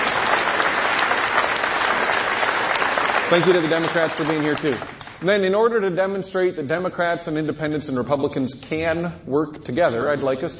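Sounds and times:
audience applause: 0:00.0 - 0:05.2
speech: 0:03.3 - 0:10.5.

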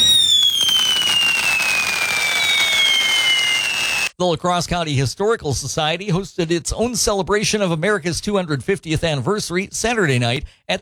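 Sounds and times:
loud fireworks crackling: 0:00.0 - 0:04.1
speech: 0:04.2 - 0:10.7.

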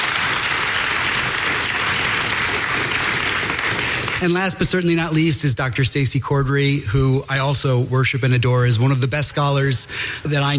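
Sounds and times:
audience applause: 0:00.0 - 0:04.7
speech: 0:04.2 - 0:10.5.

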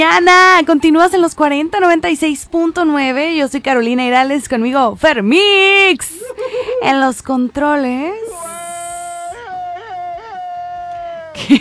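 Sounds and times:
speech: 0:00.0 - 0:08.4, 0:11.4 - 0:11.5
laughter: 0:05.6 - 0:11.5
long high-pitched scream from an old film: 0:08.2 - 0:11.5.

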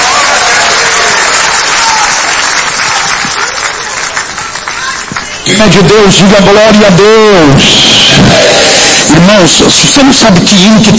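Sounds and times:
audience applauding: 0:00.0 - 0:06.0
speech: 0:05.5 - 0:08.5, 0:09.1 - 0:10.9.

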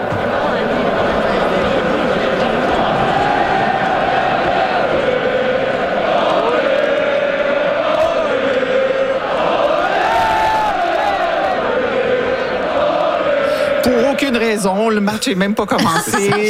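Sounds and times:
hockey crowd roar outside the Bell Centre: 0:00.0 - 0:14.5
hockey fans chanting outside the Bell Centre before a game: 0:00.0 - 0:14.8
speech: 0:14.6 - 0:16.4
laughter: 0:15.8 - 0:16.4.

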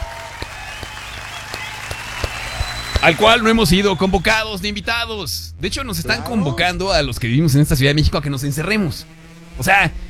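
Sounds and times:
applause: 0:00.0 - 0:04.1
low hum: 0:00.0 - 0:10.0
speech: 0:03.0 - 0:10.0.

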